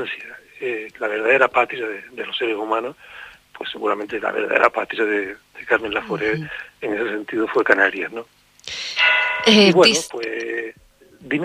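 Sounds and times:
speech: 0:00.0 - 0:08.8, 0:09.4 - 0:11.4
church bells: 0:09.0 - 0:09.9.

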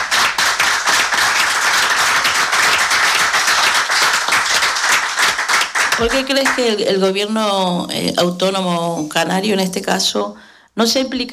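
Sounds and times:
audience clapping: 0:00.0 - 0:07.8
speech: 0:06.0 - 0:11.3.

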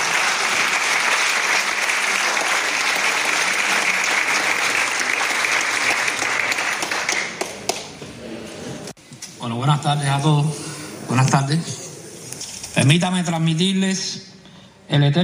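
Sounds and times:
audience applause: 0:00.0 - 0:08.0
speech: 0:09.6 - 0:11.8, 0:12.8 - 0:14.3, 0:14.9 - 0:15.2.

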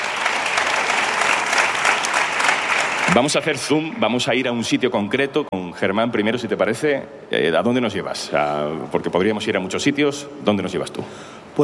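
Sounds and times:
audience applauding two guests: 0:00.0 - 0:04.6
speech: 0:03.2 - 0:11.6.

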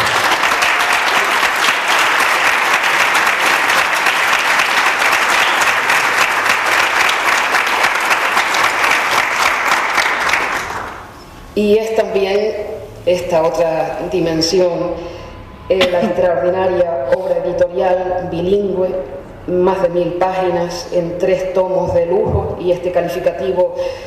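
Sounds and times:
audience applause: 0:00.0 - 0:11.1
speech: 0:11.6 - 0:24.0.

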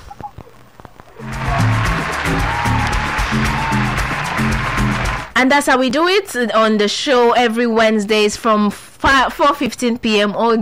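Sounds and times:
clapping: 0:01.2 - 0:05.3
speech: 0:05.4 - 0:10.6.

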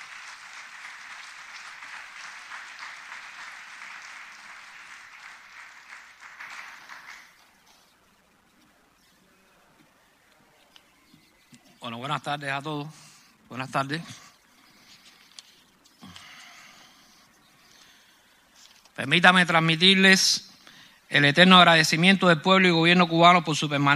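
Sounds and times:
applause: 0:00.0 - 0:07.9
speech: 0:11.8 - 0:14.2, 0:19.0 - 0:20.5, 0:21.1 - 0:23.9.

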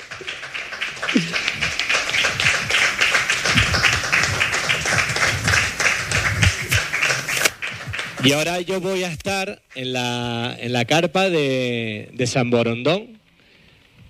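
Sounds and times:
audience applause: 0:00.0 - 0:08.7
speech: 0:08.2 - 0:13.2.

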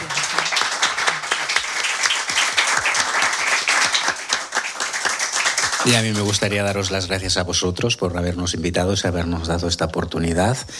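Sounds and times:
audience applause: 0:00.0 - 0:06.8
speech: 0:05.8 - 0:10.7.

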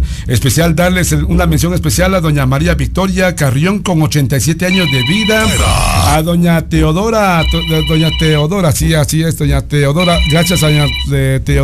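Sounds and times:
speech: 0:00.3 - 0:11.6
telephone electronic ringtone: 0:04.7 - 0:05.8, 0:07.4 - 0:08.5, 0:10.0 - 0:11.2.

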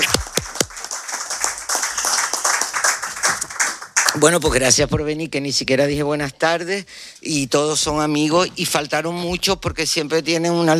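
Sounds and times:
audience clapping: 0:00.0 - 0:05.0
speech: 0:04.2 - 0:10.7.

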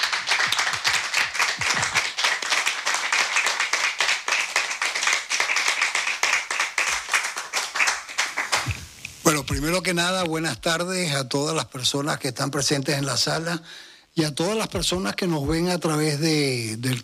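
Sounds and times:
audience clapping: 0:00.0 - 0:09.0
speech: 0:09.4 - 0:17.0.

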